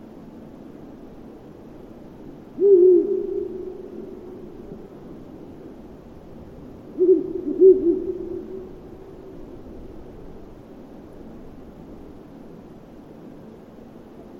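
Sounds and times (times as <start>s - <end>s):
Ural owl hooting: 2.6s - 5.2s, 6.9s - 9.4s.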